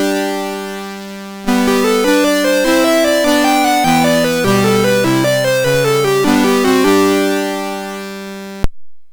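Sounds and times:
chiptune melody on MOS6581R3 sound chip: 1.5 - 8.6.

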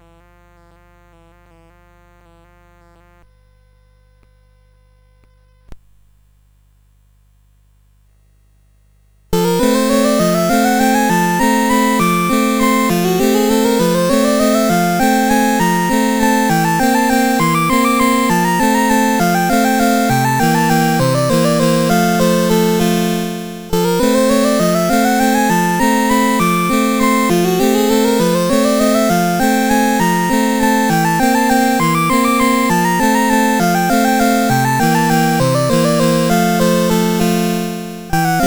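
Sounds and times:
CSG 8580 sound chip: 9.4 - 38.4.

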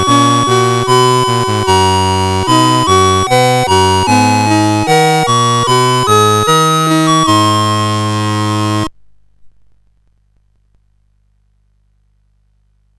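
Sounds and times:
synthesizer intrada: 0.0 - 8.9.

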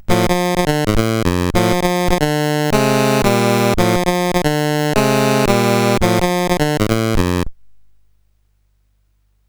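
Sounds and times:
SID chiptune music on a CSG8580R5 chip: 0.0 - 7.5.

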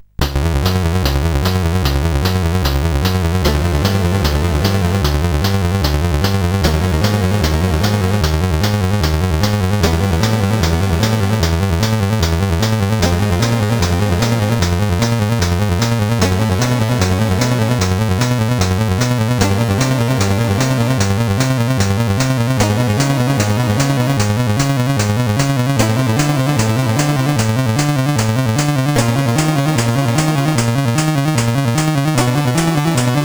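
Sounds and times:
SID CSG8580R5 chip music: 0.1 - 33.2.

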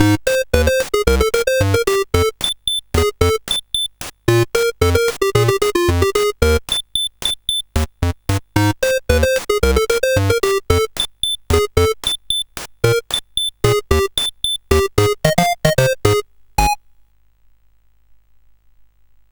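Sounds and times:
SID chiptune music on a CSG8580R5 chip: 0.0 - 3.6, 4.3 - 6.8, 7.8 - 16.8.

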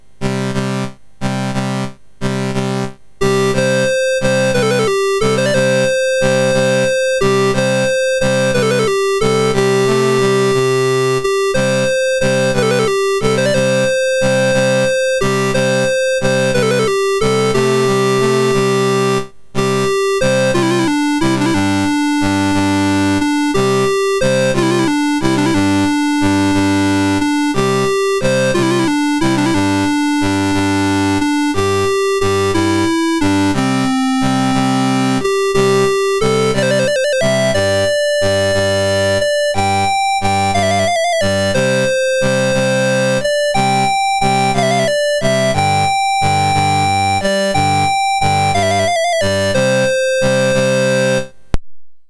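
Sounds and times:
national anthem on MOS 6581 chip: 0.2 - 51.5.

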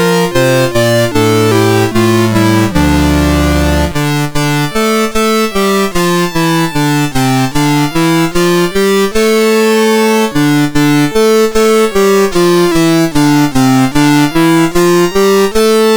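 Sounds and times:
chiptune Christmas carol on a MOS6581 sound chip: 0.0 - 15.9.

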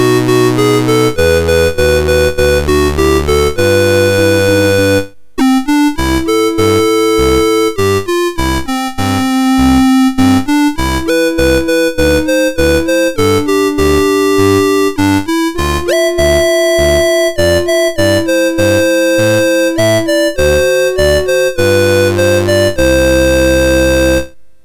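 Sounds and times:
MOS6581R4 chip synth melody: 0.0 - 24.4.

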